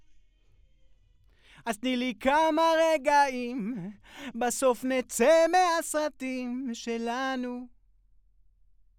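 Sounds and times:
vocals: 1.4s - 7.7s.

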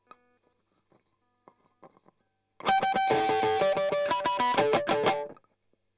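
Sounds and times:
strumming: 2.7s - 5.3s.

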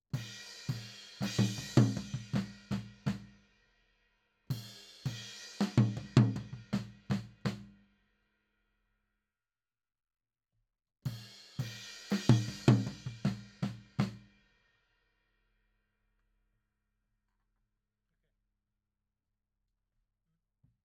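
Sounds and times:
tom drum: 0.2s - 3.3s, 4.6s - 7.7s, 11.7s - 14.2s.

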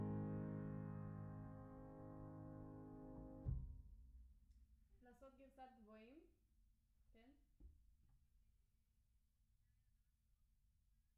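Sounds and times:
piano: 0.0s - 3.8s.

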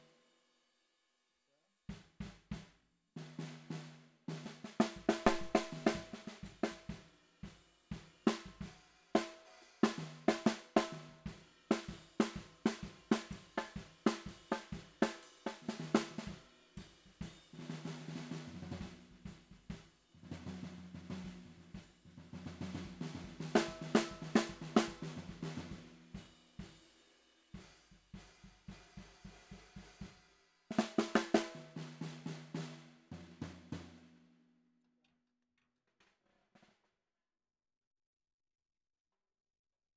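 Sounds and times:
bottom snare drum: 1.9s - 27.0s, 27.6s - 34.3s.

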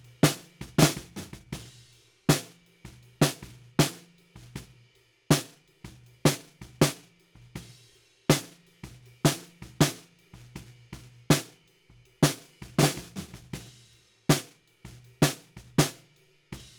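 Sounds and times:
snare drum bottom: 0.0s - 1.6s, 2.3s - 2.6s, 3.2s - 4.1s, 5.3s - 5.6s, 6.3s - 7.1s, 8.3s - 8.6s, 9.3s - 10.1s, 11.3s - 11.6s, 12.2s - 13.6s, 14.3s - 14.6s, 15.2s - 16.1s.

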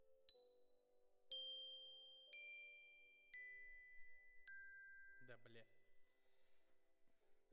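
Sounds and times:
glockenspiel: 0.0s - 5.9s.

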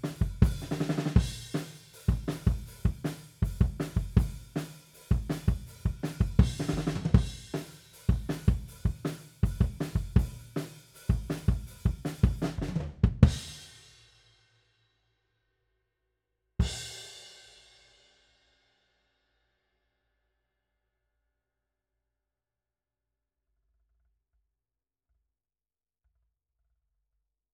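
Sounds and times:
kick drum beat: 0.0s - 10.5s, 11.1s - 13.5s.

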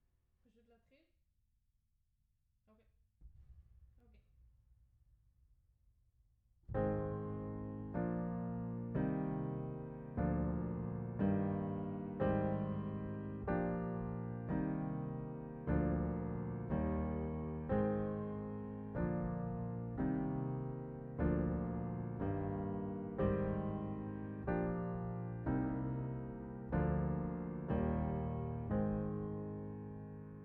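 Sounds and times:
piano: 6.7s - 30.4s.

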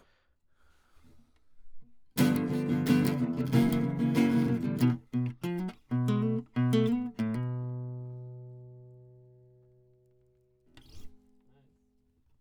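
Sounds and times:
classical guitar: 2.2s - 11.4s.

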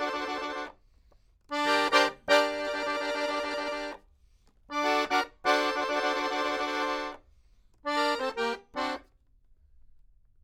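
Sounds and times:
accordion: 0.0s - 0.8s, 1.5s - 4.0s, 4.7s - 7.2s, 7.8s - 9.1s.

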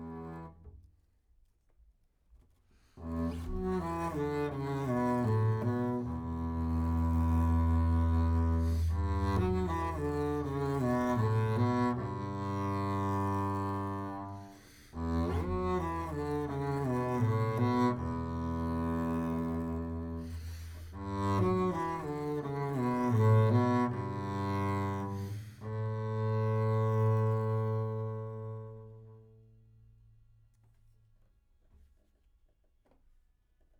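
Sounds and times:
bass: 0.0s - 1.0s, 3.0s - 31.1s.

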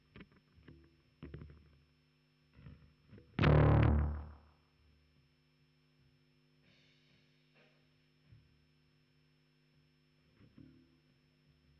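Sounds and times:
bass guitar recorded by direct input: 3.4s - 4.4s.

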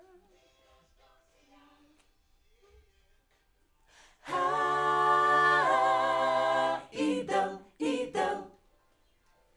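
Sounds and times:
backing vocals on AKG microphone: 4.3s - 8.5s.

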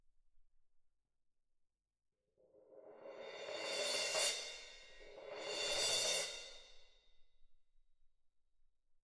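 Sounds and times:
percussion: 2.5s - 7.2s.

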